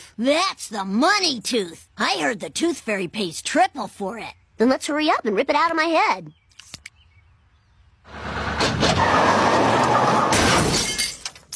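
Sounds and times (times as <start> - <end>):
speech: 0.2 - 6.4
car crash: 8.2 - 11.5
glass shattering: 10.3 - 11.5.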